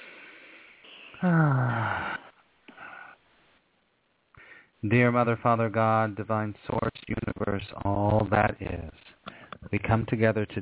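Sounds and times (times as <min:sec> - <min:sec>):
group taking a deep breath before a spoken prayer: 0:00.0 - 0:03.2, 0:04.3 - 0:04.8, 0:09.2 - 0:09.6
group's voiced sighing exhale: 0:00.0 - 0:03.2
speech: 0:01.2 - 0:02.1, 0:04.8 - 0:08.9, 0:09.7 - 0:10.6.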